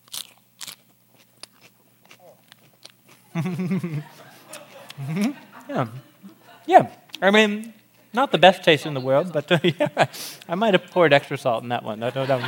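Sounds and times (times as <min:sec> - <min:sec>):
crunching on salted karpas vegetable: 0:00.0 - 0:03.8
laughter: 0:03.3 - 0:07.5, 0:08.6 - 0:11.2, 0:11.8 - 0:12.4
speech: 0:03.4 - 0:04.3, 0:05.0 - 0:12.4.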